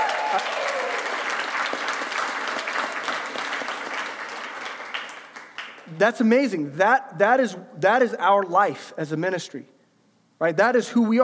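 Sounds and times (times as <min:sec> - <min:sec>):
audience applause: 0:00.0 - 0:05.9
speech: 0:06.0 - 0:09.7, 0:10.4 - 0:11.2.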